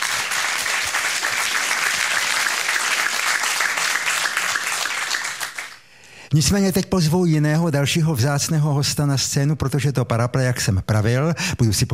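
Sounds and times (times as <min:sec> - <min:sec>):
audience applause: 0:00.0 - 0:05.8
speech: 0:06.3 - 0:11.9.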